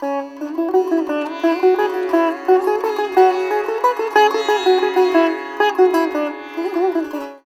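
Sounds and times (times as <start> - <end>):
sitar: 0.0 - 7.4.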